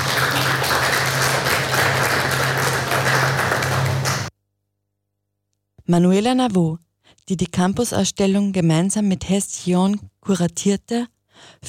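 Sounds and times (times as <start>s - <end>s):
audience applause: 0.0s - 4.3s
speech: 5.9s - 11.6s.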